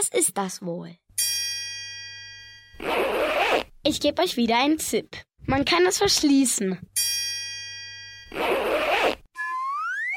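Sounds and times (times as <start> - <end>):
speech: 0.0 - 1.1, 2.8 - 7.1, 8.3 - 8.6
zipper being closed: 2.8 - 3.8, 8.3 - 9.3.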